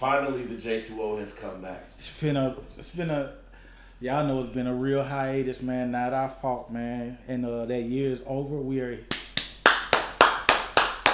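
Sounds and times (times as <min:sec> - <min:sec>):
speech: 0:00.0 - 0:03.4, 0:04.0 - 0:09.2
sharp hand claps sound effect: 0:09.1 - 0:11.1.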